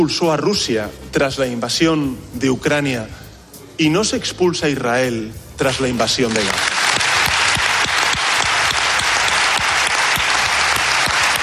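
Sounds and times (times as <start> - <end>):
speech: 0.0 - 3.2, 3.8 - 6.7
audience applause: 6.3 - 11.4.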